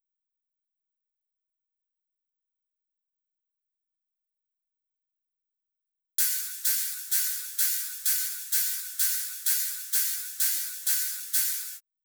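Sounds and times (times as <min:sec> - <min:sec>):
cymbal: 0:06.2 - 0:11.8
drum loop: 0:06.2 - 0:11.8.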